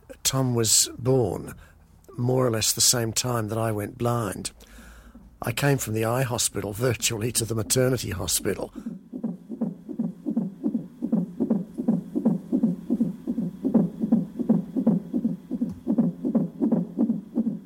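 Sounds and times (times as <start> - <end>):
speech: 0.2 - 4.8, 5.4 - 9.0
unborn baby's heartbeat on heart monitor: 8.6 - 17.6.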